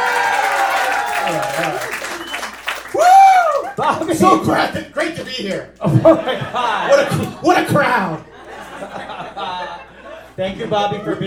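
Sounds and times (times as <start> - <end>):
audience applause: 0.0 - 3.8
speech: 1.2 - 2.0, 3.8 - 8.3, 10.4 - 11.2
laughter: 3.6 - 4.4, 5.8 - 11.2.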